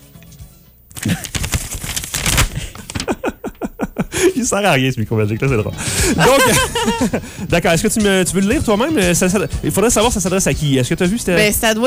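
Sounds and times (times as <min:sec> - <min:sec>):
letter paper being unfolded into microphone: 0:00.9 - 0:03.4
speech: 0:01.0 - 0:01.3, 0:04.4 - 0:11.8
laughter: 0:02.6 - 0:04.8, 0:05.4 - 0:07.6.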